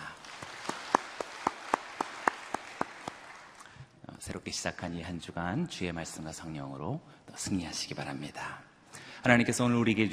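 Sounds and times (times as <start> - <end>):
audience applause: 0.0 - 3.7
speech: 4.3 - 8.6, 9.2 - 10.1.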